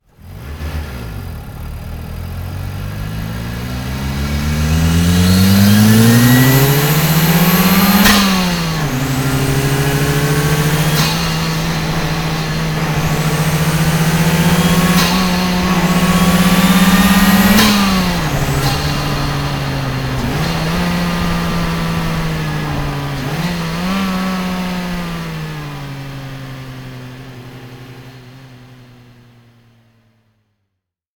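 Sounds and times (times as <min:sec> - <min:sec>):
boost sound: 0:02.9 - 0:26.4.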